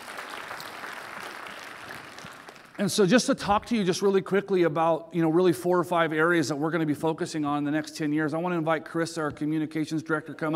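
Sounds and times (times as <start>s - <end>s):
audience round of applause: 0.0s - 2.8s
speech: 2.8s - 10.5s.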